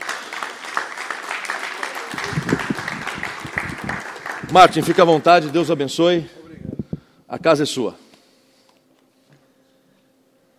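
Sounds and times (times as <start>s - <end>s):
round of applause: 0.0s - 6.0s
speech: 4.5s - 6.4s, 7.3s - 8.0s.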